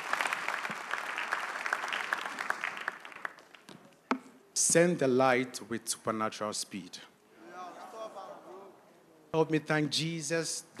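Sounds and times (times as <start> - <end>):
audience clapping: 0.0 - 3.8
speech: 4.7 - 7.1, 9.4 - 10.7.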